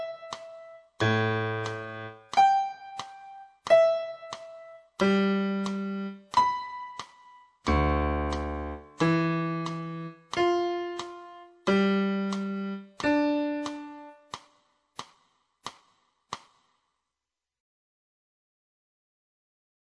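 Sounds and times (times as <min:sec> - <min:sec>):
piano: 0:00.0 - 0:14.5.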